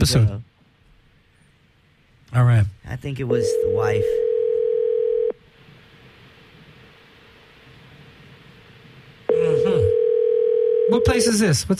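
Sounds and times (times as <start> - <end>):
speech: 0.0 - 0.5, 2.3 - 4.2, 11.0 - 11.7
ringback tone on an unanswered call to a bar in Honolulu: 3.4 - 5.3, 9.3 - 11.3.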